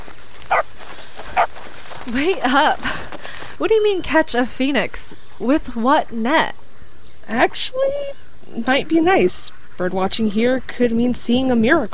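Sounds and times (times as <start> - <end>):
dogs barking: 0.4 - 1.6
speech: 2.1 - 3.0, 3.6 - 6.6, 7.3 - 11.9.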